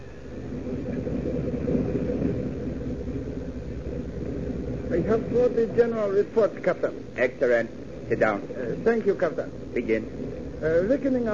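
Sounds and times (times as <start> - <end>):
low droning rumble of submarine motors: 0.0 - 11.3
speech: 5.0 - 11.3.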